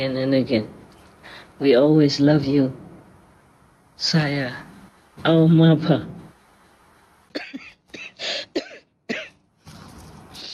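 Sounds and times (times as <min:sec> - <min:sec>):
speech: 0:00.0 - 0:02.8, 0:04.0 - 0:06.2
person coughing: 0:07.3 - 0:09.4.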